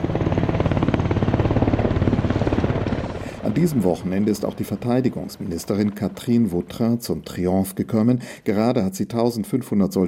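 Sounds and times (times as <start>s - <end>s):
helicopter flying during a military demonstration: 0.0s - 6.9s
speech: 3.6s - 10.0s.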